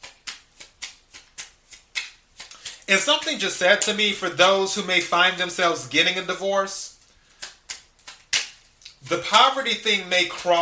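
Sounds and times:
oracle cards being drawn from the Divine Doors deck: 0.0 - 4.5, 6.9 - 10.6
speech: 2.9 - 6.9, 9.1 - 10.6.

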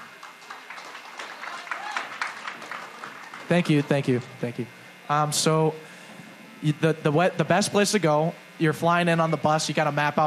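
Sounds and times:
applause: 0.0 - 4.3
speech: 3.5 - 5.9, 6.6 - 10.2.

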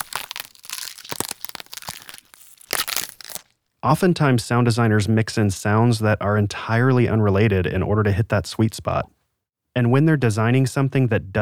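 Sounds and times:
celery snapped and twisted: 0.0 - 3.5
speech: 3.8 - 9.2, 9.8 - 11.4.

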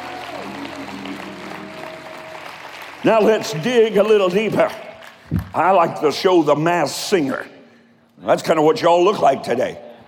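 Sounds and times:
audience clapping: 0.0 - 5.8
speech: 3.0 - 4.8, 5.5 - 7.5, 8.2 - 9.8.

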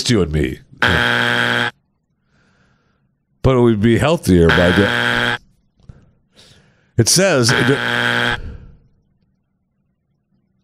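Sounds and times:
speech: 0.1 - 1.8, 3.4 - 5.1, 7.0 - 8.5
electronic buzzer: 0.8 - 1.8, 4.5 - 5.4, 7.4 - 8.6.

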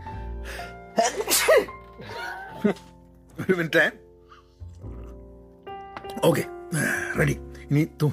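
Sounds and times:
person sneezing from allergy: 1.0 - 2.3
speech: 2.6 - 4.0, 6.2 - 8.1.

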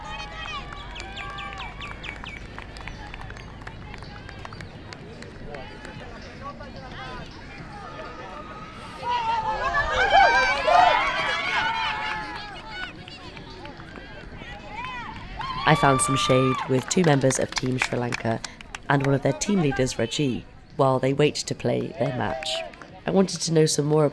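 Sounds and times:
light clapping at a sports ground: 0.0 - 7.8, 10.5 - 19.9, 21.8 - 24.0
birds chirping at a cricket ground: 0.0 - 8.8, 12.3 - 22.5
cheering at a sports ground: 0.0 - 24.1
crowd murmur at a sports ground: 0.0 - 24.1
speech: 15.7 - 24.1.

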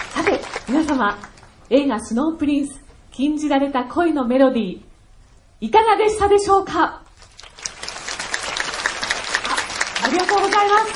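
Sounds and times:
audience applause: 0.0 - 1.5, 7.2 - 10.9
speech: 0.2 - 4.9, 5.6 - 7.0, 10.0 - 10.9.

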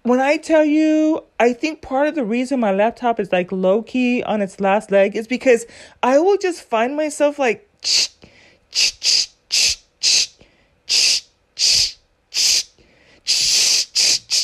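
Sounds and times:
speech: 0.1 - 10.3
voice imitating a spray bottle hiss: 7.8 - 14.4.

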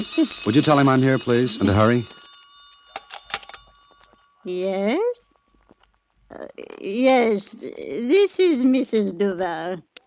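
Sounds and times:
phone ringing: 0.0 - 5.8
speech: 0.1 - 2.2, 4.4 - 5.3, 6.3 - 9.9.

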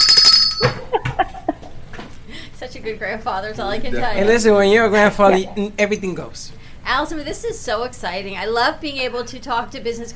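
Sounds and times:
hand bell ringing: 0.0 - 0.8
speech: 2.8 - 10.1.

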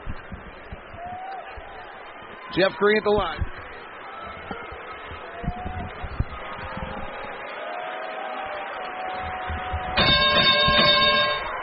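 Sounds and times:
speech: 2.5 - 3.5
arena thirty-point bell ringing: 10.0 - 11.6.

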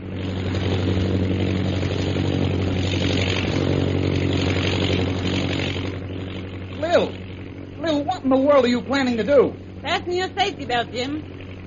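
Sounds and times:
airplane engine droning in flight: 0.0 - 11.6
speech: 8.3 - 11.3.

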